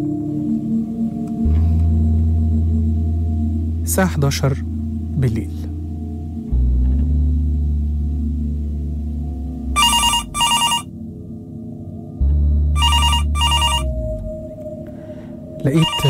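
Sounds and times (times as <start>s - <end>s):
low steady background: 0.0s - 16.0s
speech: 3.9s - 5.6s, 15.7s - 16.0s
electronic telephone ringing: 9.8s - 10.9s, 12.8s - 13.9s, 15.8s - 16.0s.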